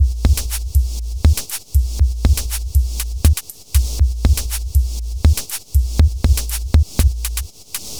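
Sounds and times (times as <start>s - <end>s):
composite beat: 0.0s - 7.9s.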